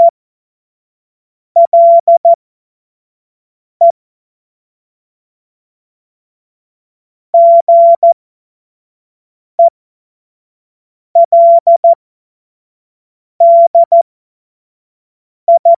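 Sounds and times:
CW morse code beeps: 0:01.6 - 0:02.3, 0:07.4 - 0:08.2, 0:11.2 - 0:12.0, 0:13.4 - 0:14.0, 0:15.5 - 0:15.7.

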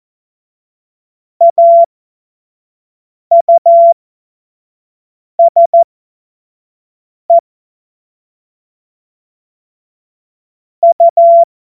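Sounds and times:
Morse code course tones: 0:01.4 - 0:01.9, 0:03.3 - 0:03.9, 0:10.8 - 0:11.5.

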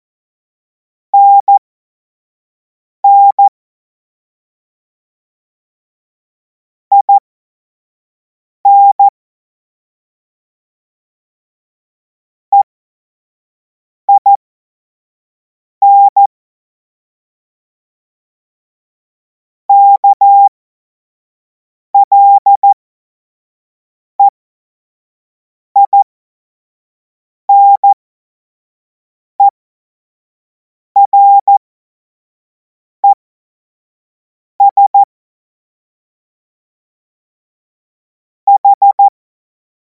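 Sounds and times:
CW Morse code beeps: 0:01.2 - 0:01.6, 0:03.0 - 0:03.5, 0:06.9 - 0:07.2, 0:08.7 - 0:09.1, 0:14.1 - 0:14.3, 0:15.8 - 0:16.3, 0:19.7 - 0:20.5, 0:22.0 - 0:22.8, 0:25.8 - 0:26.0, 0:27.5 - 0:28.0, 0:31.0 - 0:31.6, 0:34.6 - 0:35.1, 0:38.5 - 0:39.2.

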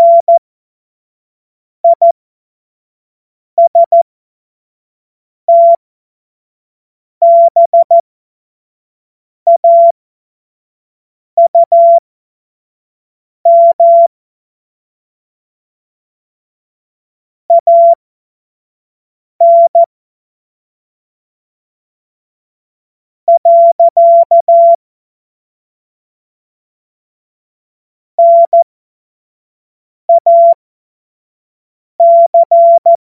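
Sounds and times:
CW Morse code beeps: 0:00.0 - 0:00.4, 0:01.8 - 0:02.2, 0:03.6 - 0:04.0, 0:05.5 - 0:05.8, 0:07.2 - 0:08.0, 0:09.5 - 0:09.9, 0:11.4 - 0:12.0, 0:13.5 - 0:14.1, 0:17.5 - 0:18.0, 0:19.4 - 0:19.9, 0:23.3 - 0:24.8, 0:28.2 - 0:28.7, 0:30.1 - 0:30.6, 0:32.0 - 0:33.0.

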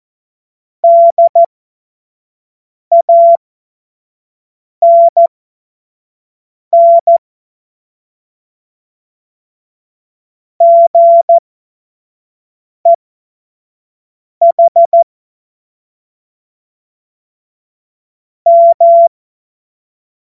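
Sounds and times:
CW Morse code beeps: 0:00.8 - 0:01.5, 0:02.9 - 0:03.4, 0:04.8 - 0:05.3, 0:06.8 - 0:07.2, 0:10.6 - 0:11.4, 0:14.4 - 0:15.0, 0:18.5 - 0:19.1.

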